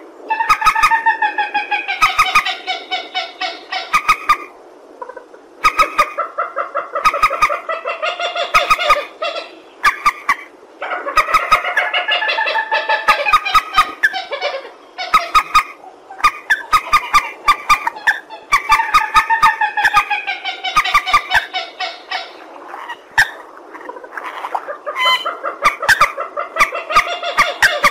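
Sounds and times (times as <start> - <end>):
purple swamphen cackling: 0.0 - 27.9.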